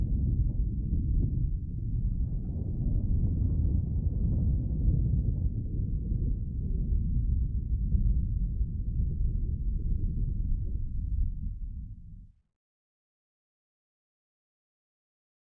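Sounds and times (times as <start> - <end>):
thunder rumble: 0.0 - 12.3.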